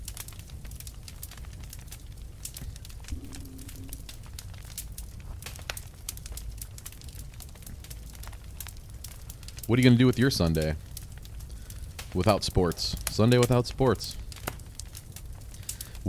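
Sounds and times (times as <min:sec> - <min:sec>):
fire crackling: 0:00.0 - 0:16.0
faint hum: 0:03.0 - 0:05.5
speech: 0:09.7 - 0:10.9, 0:12.2 - 0:14.2.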